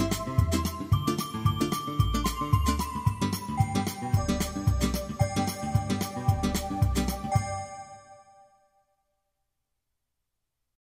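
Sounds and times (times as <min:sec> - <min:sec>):
Christmas beat: 0:00.0 - 0:08.4.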